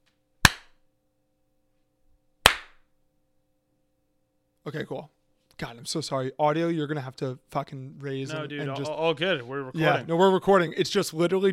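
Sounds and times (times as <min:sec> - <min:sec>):
hand clap for audio sync: 0:00.4 - 0:00.8, 0:02.5 - 0:02.8
speech: 0:04.6 - 0:11.5.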